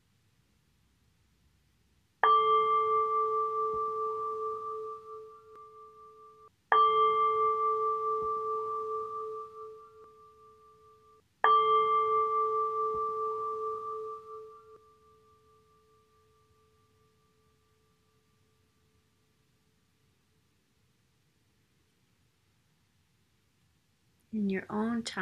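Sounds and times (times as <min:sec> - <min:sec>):
meditation bell ringing: 0:02.2 - 0:19.3
speech: 0:24.4 - 0:25.1.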